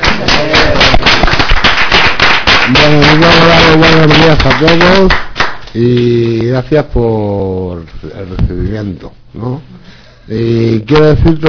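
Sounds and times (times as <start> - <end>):
audience applause: 0.0 - 5.6
speech: 4.6 - 11.4.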